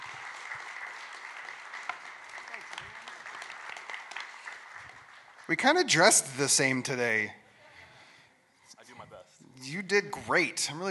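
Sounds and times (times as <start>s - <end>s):
audience applauding to welcome a speaker onto the stage: 0.0s - 6.6s
speech: 5.5s - 7.4s, 9.7s - 10.8s.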